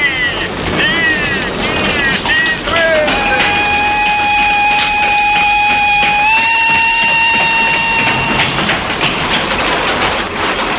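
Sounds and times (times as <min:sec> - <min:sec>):
train rushing past: 0:00.0 - 0:10.7
train horn blast: 0:02.8 - 0:08.9.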